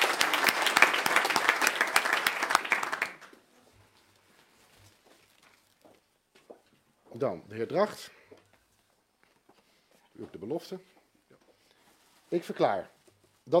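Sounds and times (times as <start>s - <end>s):
crowd clapping: 0.0s - 3.4s
speech: 7.2s - 8.2s, 10.4s - 11.0s, 12.3s - 13.5s.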